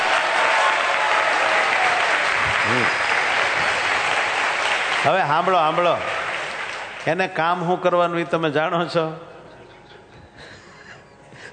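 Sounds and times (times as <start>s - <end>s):
audience applause at a Vachanamrut centenary festival gathering: 0.0s - 7.4s
speech: 5.0s - 6.2s, 7.0s - 9.3s.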